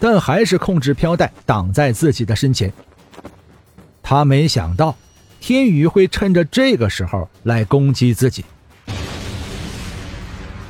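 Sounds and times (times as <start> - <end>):
speech: 0.0 - 3.3, 4.1 - 9.0
explosion from colliding energy blasts: 8.8 - 10.6.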